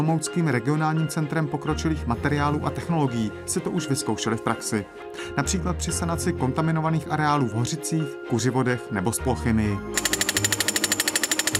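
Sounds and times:
speech: 0:00.0 - 0:10.2
drilling rig boring a borehole: 0:10.0 - 0:11.5.

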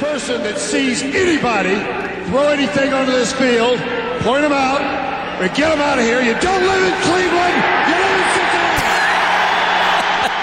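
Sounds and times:
speech: 0:00.1 - 0:08.1
stadium crowd cheering and shouting: 0:05.3 - 0:10.4.

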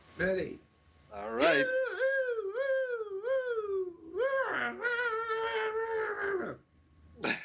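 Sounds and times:
speech: 0:00.2 - 0:01.8
person imitating a hound dog howl: 0:01.3 - 0:06.6.

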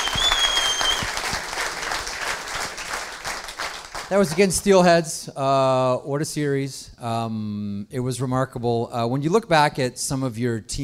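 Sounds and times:
audience applause: 0:00.0 - 0:04.5
speech: 0:04.1 - 0:10.8.

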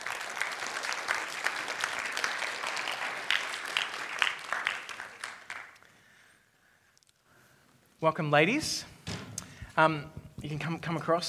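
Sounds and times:
audience round of applause: 0:00.0 - 0:05.9
speech: 0:08.0 - 0:09.2, 0:09.8 - 0:11.2.

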